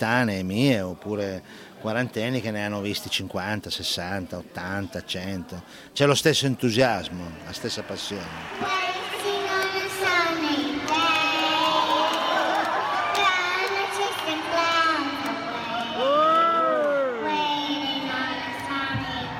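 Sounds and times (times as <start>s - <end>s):
speech: 0.0s - 9.0s
rock concert crowd noise and cheering: 0.0s - 19.3s
four-year-old girl singing at a rock concert: 8.6s - 12.3s, 13.0s - 19.3s.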